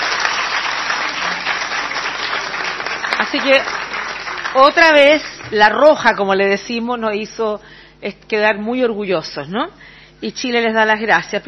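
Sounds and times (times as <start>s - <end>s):
audience applause: 0.0s - 5.5s
speech: 3.2s - 3.8s, 4.5s - 11.4s.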